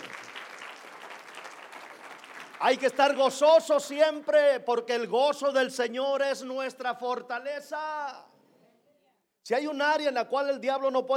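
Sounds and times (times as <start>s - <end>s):
audience applauding: 0.0s - 3.4s
speech: 2.6s - 8.3s, 9.5s - 11.1s.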